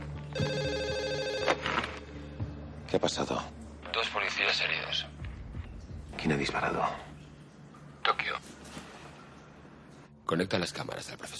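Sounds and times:
red telephone ringing: 0:00.3 - 0:02.0
speech: 0:02.9 - 0:05.2, 0:06.2 - 0:07.1, 0:10.3 - 0:11.3.

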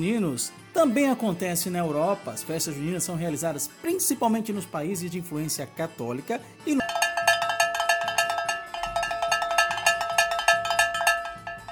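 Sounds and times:
speech: 0:00.0 - 0:06.9
bell being rung: 0:06.7 - 0:11.7.

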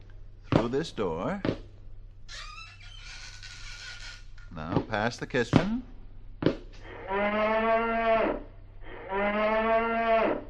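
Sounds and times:
low steady hum: 0:00.0 - 0:10.4
speech: 0:00.6 - 0:01.6, 0:04.5 - 0:08.0
cow mooing: 0:06.8 - 0:10.4.

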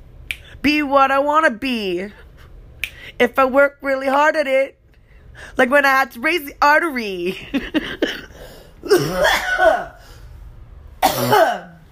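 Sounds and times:
speech: 0:00.6 - 0:02.2, 0:03.2 - 0:04.8, 0:05.4 - 0:08.2, 0:08.8 - 0:10.0, 0:11.2 - 0:11.7
hard hacking coughing fit from one person: 0:07.8 - 0:10.0, 0:11.0 - 0:11.8.

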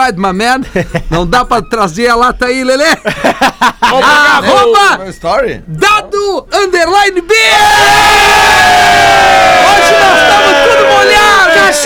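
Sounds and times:
speech: 0:00.1 - 0:11.8
laughter: 0:06.3 - 0:09.2, 0:10.1 - 0:11.8
people shouting: 0:07.4 - 0:11.8.

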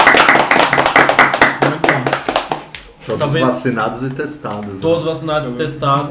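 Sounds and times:
round of applause: 0:00.0 - 0:02.7
speech: 0:03.1 - 0:06.1.

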